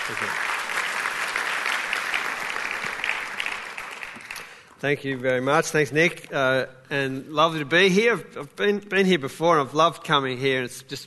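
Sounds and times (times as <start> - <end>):
audience applause welcoming a guest speaker: 0.0 - 4.7
speech: 0.1 - 0.5, 4.8 - 11.0.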